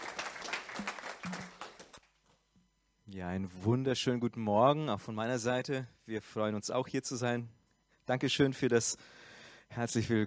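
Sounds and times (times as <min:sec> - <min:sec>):
crowd applause: 0:00.0 - 0:02.0
speech: 0:03.1 - 0:10.2.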